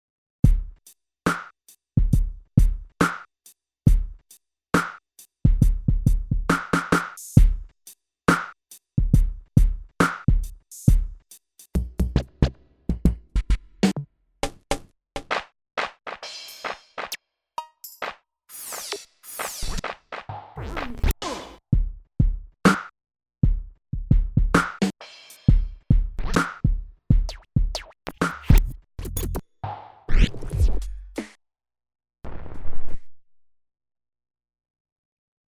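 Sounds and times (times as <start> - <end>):
hip hop drum kit: 0.4 - 3.2, 3.9 - 14.0, 15.2 - 29.4.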